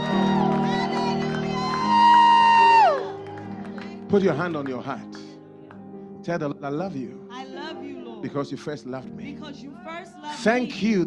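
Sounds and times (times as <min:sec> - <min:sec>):
crowd shouting praise: 0:00.0 - 0:04.0
audience clapping for the Lord Jesus: 0:00.0 - 0:06.0
speech: 0:04.1 - 0:05.2, 0:06.3 - 0:07.2, 0:08.2 - 0:11.0.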